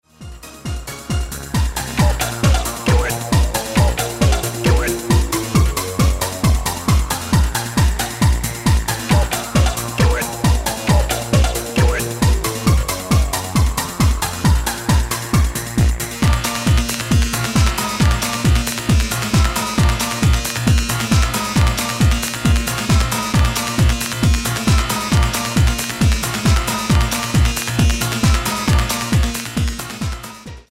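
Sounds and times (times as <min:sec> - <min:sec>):
slot machine techno: 0:00.7 - 0:30.4.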